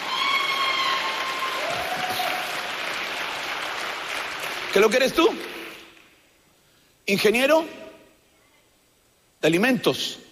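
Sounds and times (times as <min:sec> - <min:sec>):
audience applause: 0:00.0 - 0:06.0
speech: 0:04.7 - 0:05.5, 0:07.1 - 0:07.8, 0:09.4 - 0:10.2.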